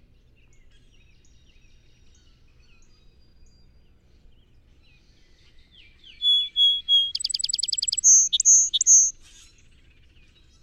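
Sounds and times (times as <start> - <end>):
song sparrow singing: 6.0 - 9.1.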